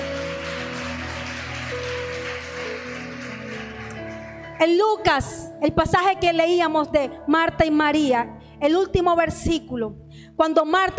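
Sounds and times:
audience applause: 0.0s - 4.6s
sustained keyboard chords: 0.0s - 7.8s
speech: 4.6s - 10.9s.

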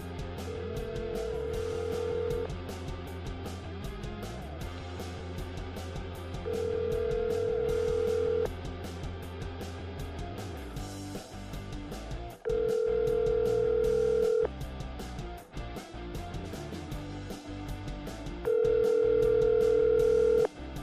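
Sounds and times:
telephone ringback tones: 0.4s - 2.5s, 6.5s - 8.5s, 12.4s - 14.5s, 18.4s - 20.5s.

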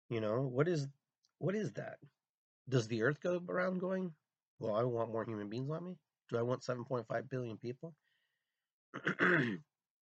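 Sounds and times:
speech: 0.1s - 8.0s, 8.9s - 9.7s
person coughing: 9.0s - 9.7s.

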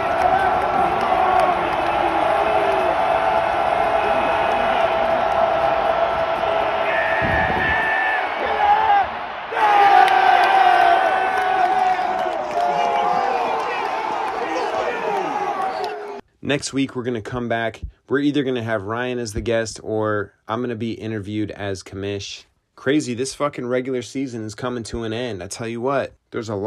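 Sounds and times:
large crowd cheering and roaring: 0.0s - 16.2s
speech: 16.5s - 26.6s.

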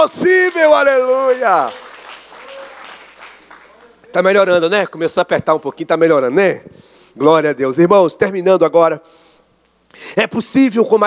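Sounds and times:
speech: 0.0s - 1.8s, 4.1s - 9.2s, 9.9s - 11.0s
crowd applause: 0.0s - 5.1s.

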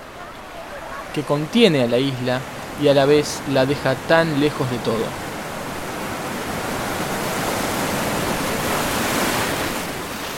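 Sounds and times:
sea waves: 0.0s - 10.3s
speech: 1.2s - 5.2s.

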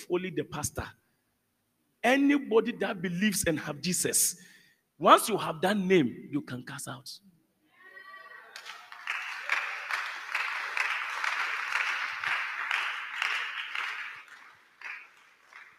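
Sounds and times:
speech: 0.0s - 1.0s, 2.0s - 7.4s
crowd of people clapping hands: 8.5s - 15.7s.

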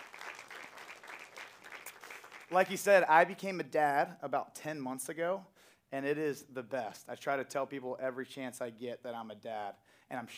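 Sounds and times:
crowd applauding: 0.0s - 2.8s
speech: 2.5s - 10.3s.

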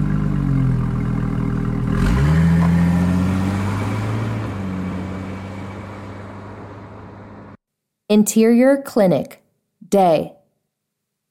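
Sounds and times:
car engine idling and revving as the car pulls away: 0.0s - 7.6s
speech: 8.1s - 10.4s.

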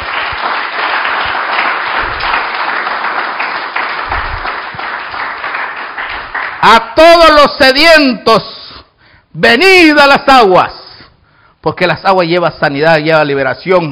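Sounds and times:
audience clapping hands: 0.0s - 7.3s
speech: 6.6s - 8.5s, 9.3s - 10.8s, 11.6s - 13.8s.

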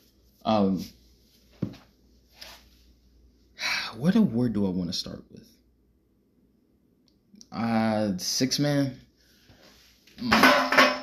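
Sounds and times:
speech: 0.4s - 1.0s, 4.0s - 5.6s, 7.5s - 9.0s, 10.2s - 10.6s
can of Arizona tea knocked over onto the floor: 10.2s - 11.0s.

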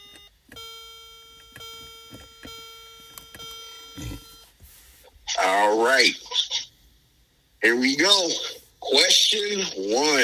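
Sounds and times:
game show buzzer melody: 0.0s - 4.5s
speech: 5.4s - 6.2s, 7.6s - 10.2s.

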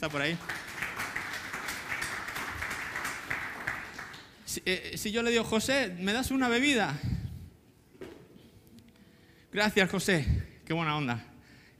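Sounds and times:
speech: 0.0s - 0.6s, 4.5s - 7.1s, 9.6s - 11.7s
crowd applauding: 0.0s - 4.4s.

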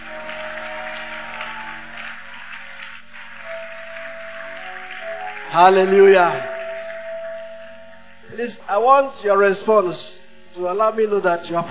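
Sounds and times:
audience clapping: 0.0s - 8.6s
sustained keyboard chord: 0.0s - 11.6s
speech: 5.5s - 6.5s, 8.4s - 11.6s.

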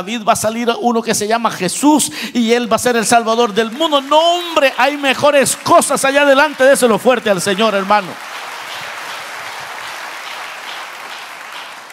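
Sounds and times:
speech: 0.0s - 8.3s
audience applause: 3.4s - 11.9s.

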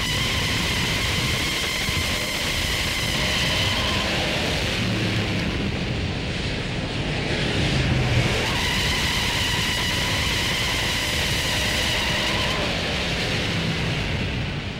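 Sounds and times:
tires squealing: 0.0s - 4.8s, 8.2s - 13.0s
car engine revving: 0.0s - 6.2s, 7.4s - 14.6s
car tire burnout: 0.0s - 14.7s.

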